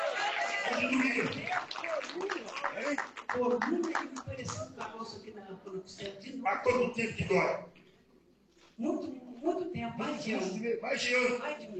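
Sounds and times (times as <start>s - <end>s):
audience clapping: 0.0s - 5.0s
speech: 0.7s - 7.8s, 8.8s - 11.7s.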